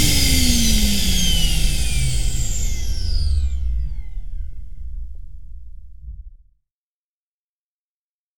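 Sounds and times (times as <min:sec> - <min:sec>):
vacuum cleaner: 0:00.0 - 0:04.8.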